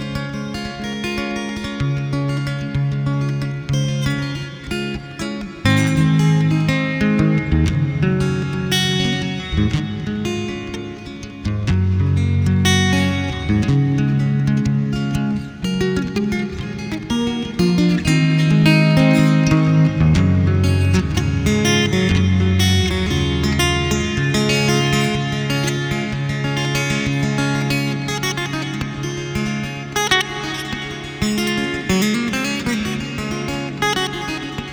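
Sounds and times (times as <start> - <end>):
guitar dance music in D major: 0.0 - 34.7.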